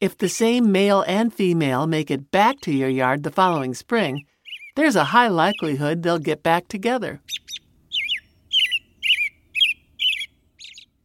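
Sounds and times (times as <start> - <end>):
speech: 0.0 - 7.4
American Robin whistled song: 4.1 - 4.8, 7.2 - 11.0.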